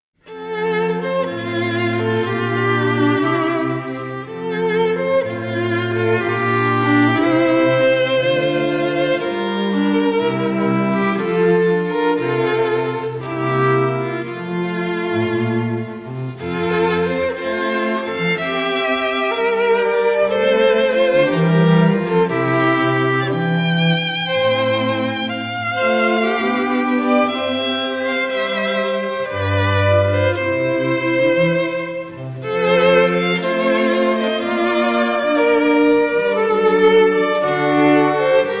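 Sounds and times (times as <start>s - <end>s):
festive string ensemble: 0.2s - 38.5s.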